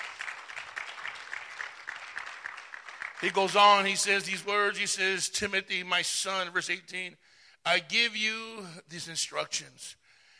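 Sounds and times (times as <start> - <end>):
audience clapping: 0.0 - 4.3
speech: 3.2 - 10.0.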